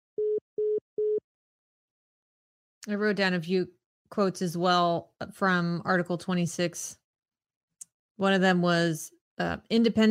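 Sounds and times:
phone line beeps after a caller hangs up: 0.2 - 1.2
speech: 2.9 - 7.0, 8.2 - 10.0.

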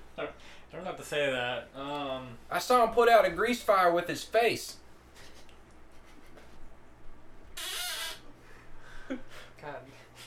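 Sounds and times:
low hum: 0.0 - 10.2
speech: 1.0 - 4.8
old chair creaking: 7.6 - 8.3.

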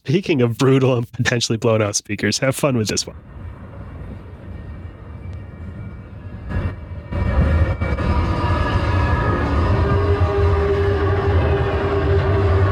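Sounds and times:
speech: 0.1 - 3.5
roller coaster train rattling on rickety tracks: 3.1 - 12.7.

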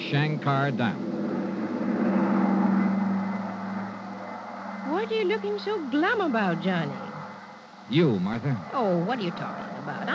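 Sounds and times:
speech: 0.1 - 1.2, 5.0 - 7.1, 7.9 - 10.1
huge private two-engine propeller plane in flight: 1.0 - 4.9.

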